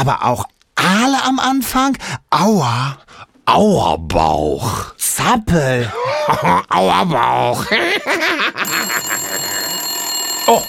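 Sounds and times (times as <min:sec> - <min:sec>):
speech: 0:00.0 - 0:09.2, 0:10.5 - 0:10.6
telephone ringing: 0:08.6 - 0:10.6.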